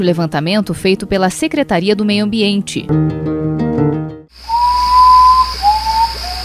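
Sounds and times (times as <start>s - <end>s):
speech: 0.0s - 3.4s
music: 0.0s - 4.3s
steady high insect-like hiss: 4.3s - 6.4s
common potoo singing mournful whistled notes: 4.5s - 6.4s.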